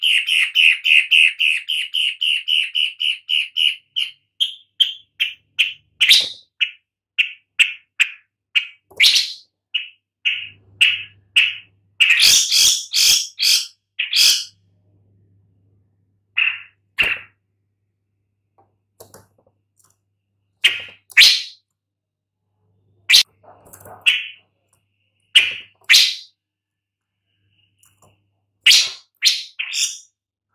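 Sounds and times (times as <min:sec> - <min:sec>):
long-tailed shrike harsh rasping calls: 0:00.0 - 0:14.6, 0:16.3 - 0:17.4, 0:20.6 - 0:21.6, 0:23.0 - 0:24.6, 0:25.2 - 0:26.4, 0:28.6 - 0:30.1.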